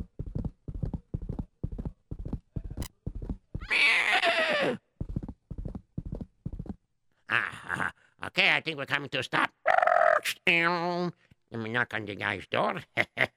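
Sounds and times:
galloping horse hooves clip-clop: 0:00.0 - 0:03.8, 0:05.0 - 0:06.8
horse whinnying: 0:03.6 - 0:04.8
speech: 0:08.4 - 0:13.2.

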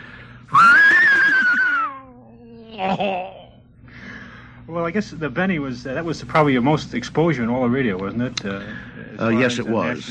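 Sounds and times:
human voice imitating an English horse whinny: 0:00.5 - 0:02.2
speech: 0:02.8 - 0:03.4, 0:04.7 - 0:10.1.

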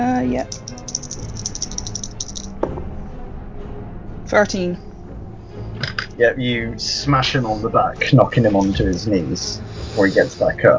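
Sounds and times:
speech: 0:00.4 - 0:00.8, 0:04.3 - 0:04.9, 0:06.2 - 0:10.7
dice rattling in a shaken hand: 0:00.4 - 0:02.5
dice knocking down: 0:00.5 - 0:02.7.

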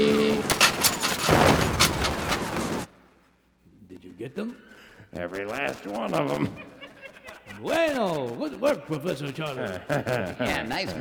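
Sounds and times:
machine gun firing: 0:00.0 - 0:02.9
speech: 0:04.3 - 0:06.7, 0:07.6 - 0:10.9
laughter: 0:04.9 - 0:10.9.

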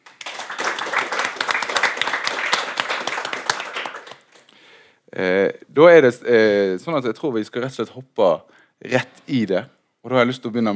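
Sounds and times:
crowd applause: 0:00.0 - 0:04.4
speech: 0:05.2 - 0:10.7.

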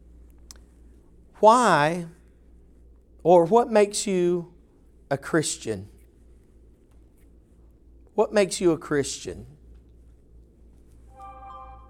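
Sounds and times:
steady low hum: 0:00.0 - 0:11.8
speech: 0:01.4 - 0:02.2, 0:03.2 - 0:04.5, 0:05.1 - 0:05.9, 0:08.2 - 0:09.6
mobile phone ringtone: 0:11.1 - 0:11.8.

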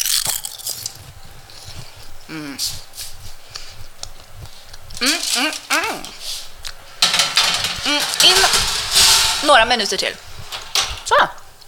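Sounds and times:
crunchy biting into oven-cooked food sample: 0:00.0 - 0:01.2
speech: 0:02.3 - 0:03.0, 0:05.0 - 0:06.2, 0:07.9 - 0:10.3, 0:11.1 - 0:11.4.

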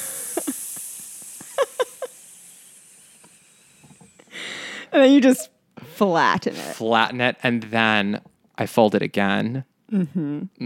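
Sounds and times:
voice imitating the hiss of a steam iron: 0:00.0 - 0:04.5
speech: 0:04.9 - 0:10.6.

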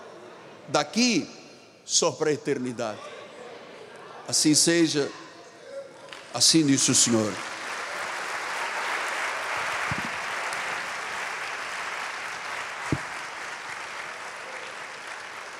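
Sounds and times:
speech: 0:00.7 - 0:03.2, 0:04.3 - 0:05.2, 0:06.3 - 0:07.5
crowd applauding: 0:06.1 - 0:15.5.

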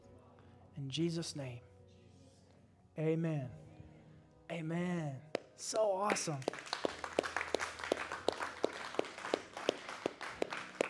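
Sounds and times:
speech: 0:00.8 - 0:01.7, 0:03.0 - 0:03.6, 0:04.5 - 0:06.7
crowd clapping: 0:05.4 - 0:10.8.

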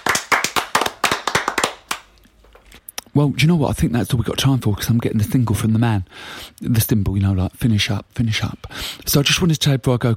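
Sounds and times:
round of applause in studio: 0:00.0 - 0:02.1
speech: 0:03.2 - 0:10.1.

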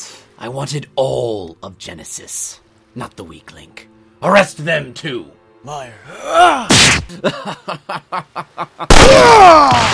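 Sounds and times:
speech: 0:00.4 - 0:09.9
gunshot: 0:06.7 - 0:07.1, 0:08.9 - 0:09.9
laughter: 0:07.1 - 0:08.9.

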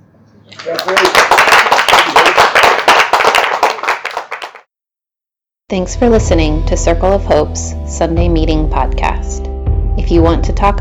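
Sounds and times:
speech: 0:00.5 - 0:02.5, 0:05.7 - 0:10.7
crowd applause: 0:00.5 - 0:04.6.

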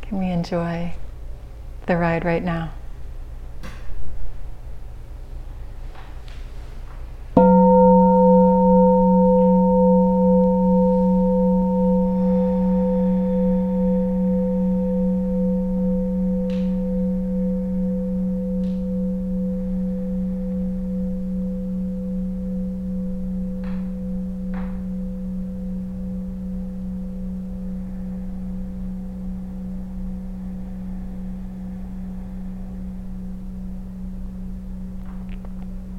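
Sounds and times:
speech: 0:00.1 - 0:01.1, 0:01.8 - 0:02.8
bell ringing: 0:07.4 - 0:26.9.

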